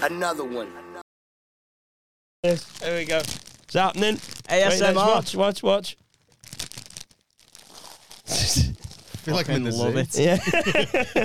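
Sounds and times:
speech: 0.0 - 0.8, 2.4 - 6.0, 8.3 - 11.2
someone crunching crisps: 2.4 - 9.5
laughter: 10.1 - 11.2.

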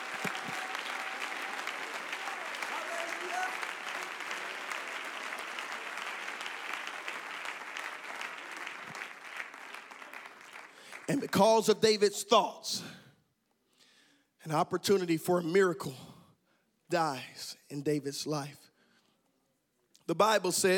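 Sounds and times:
audience clapping hands: 0.0 - 12.0
speech: 11.1 - 13.0, 14.5 - 16.1, 16.9 - 18.6, 20.1 - 20.7.

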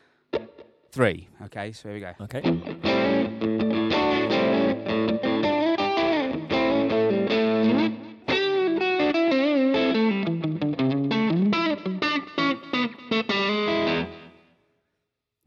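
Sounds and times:
speech: 1.0 - 3.5
distorted electric guitar playing a driving riff: 2.4 - 14.4.

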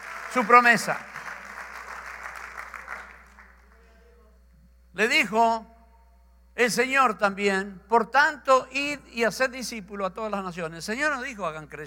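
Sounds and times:
audience applause: 0.0 - 3.7
speech: 0.4 - 1.2, 5.0 - 5.7, 6.6 - 11.8.

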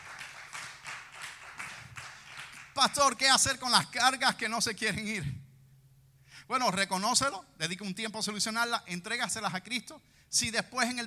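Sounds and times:
rhythmic applause: 0.0 - 3.5
speech: 2.8 - 5.4, 6.5 - 11.0.

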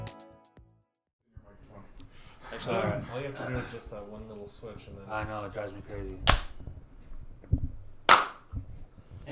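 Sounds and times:
speech: 2.6 - 6.5
hand clap: 8.1 - 8.4.

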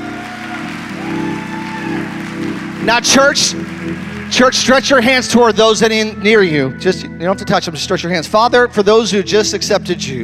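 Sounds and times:
audience clapping: 0.0 - 5.7
speech: 2.8 - 10.2.

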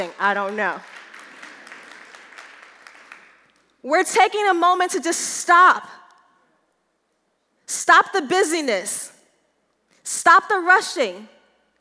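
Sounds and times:
speech: 0.0 - 0.9, 3.8 - 6.0, 7.7 - 9.1, 10.0 - 11.4
church audience clapping: 0.0 - 3.8.

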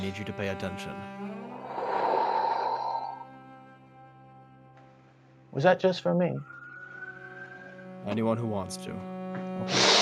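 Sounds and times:
speech: 0.0 - 1.3, 5.6 - 6.6, 8.0 - 9.9
deep breath in and out at a tabletop role-playing session: 1.5 - 3.3.

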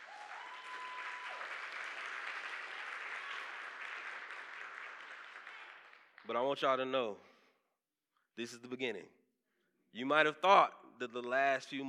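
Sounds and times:
audience applause: 0.0 - 6.3
speech: 6.3 - 7.3, 8.4 - 9.2, 9.9 - 11.8.

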